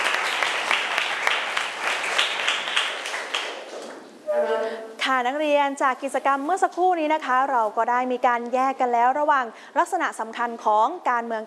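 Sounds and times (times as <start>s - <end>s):
students clapping: 0.0s - 4.0s
speech: 5.1s - 11.4s.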